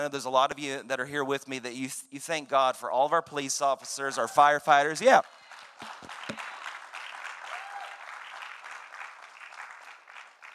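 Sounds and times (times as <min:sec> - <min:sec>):
speech: 0:00.0 - 0:06.2
crowd applauding police and firefighters: 0:05.1 - 0:10.5.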